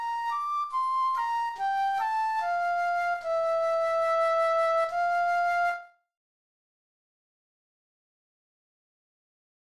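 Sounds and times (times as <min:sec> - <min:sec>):
slow lyrical flute etudes in C: 0:00.0 - 0:06.1.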